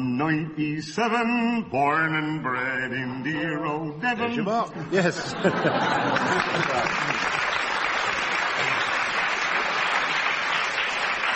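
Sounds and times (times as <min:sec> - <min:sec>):
speech: 0:00.2 - 0:07.5
laughter: 0:03.2 - 0:09.2
audience applause: 0:05.4 - 0:11.3.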